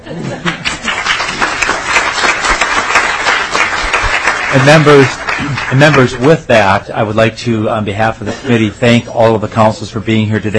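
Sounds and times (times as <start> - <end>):
laughter: 0.0 - 1.7
speech: 0.1 - 0.8, 4.5 - 10.5
audience applause: 0.4 - 6.4.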